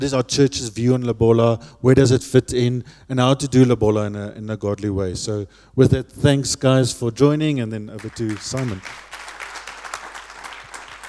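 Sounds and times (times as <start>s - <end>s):
speech: 0.0s - 9.1s
audience applause: 8.0s - 11.0s.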